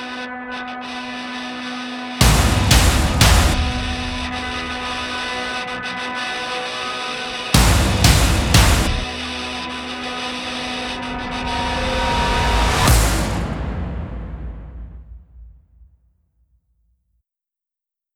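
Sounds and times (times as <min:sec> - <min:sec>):
epic rock metal montage music in C: 0:02.2 - 0:14.8.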